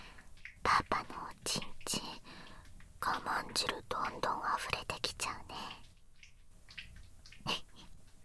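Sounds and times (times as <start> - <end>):
person whispering: 0.7 - 2.2, 3.0 - 5.9, 7.5 - 7.9.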